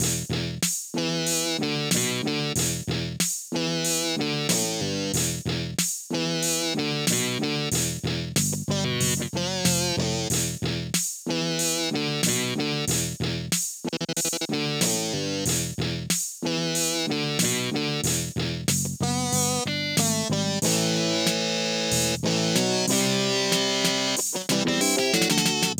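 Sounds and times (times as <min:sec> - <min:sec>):
retro rock radio aircheck: 0:00.0 - 0:25.7.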